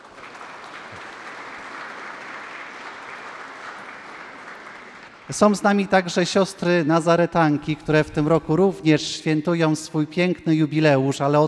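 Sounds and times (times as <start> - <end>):
audience applause: 0.0 - 5.8
speech: 5.3 - 11.4.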